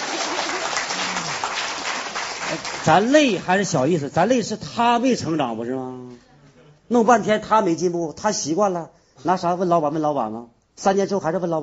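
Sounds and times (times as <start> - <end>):
audience applause: 0.0 - 3.4
speech: 2.5 - 6.3, 6.9 - 11.6.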